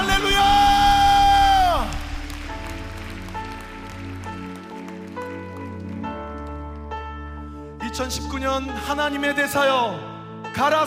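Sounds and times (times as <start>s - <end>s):
audience applause: 0.0s - 6.9s
speech: 8.0s - 10.8s.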